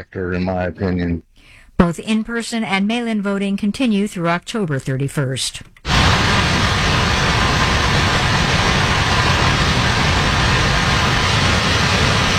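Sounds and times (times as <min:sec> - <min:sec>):
speech: 0:00.0 - 0:05.7
heavy rain triggering flash flooding across the Midwest and West: 0:05.8 - 0:12.3.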